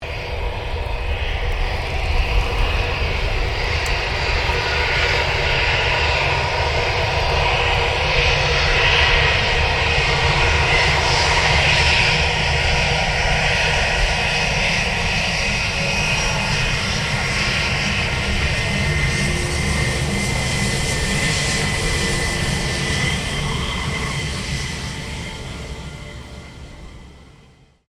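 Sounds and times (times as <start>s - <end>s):
Airbus A320 aircraft taxiing: 0.0s - 27.8s.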